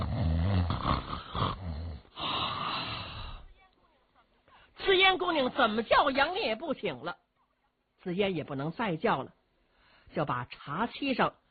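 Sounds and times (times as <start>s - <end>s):
storyteller imitating loud drunken snoring: 0.0s - 3.4s
speech: 5.1s - 7.2s, 8.0s - 9.4s, 10.1s - 11.4s.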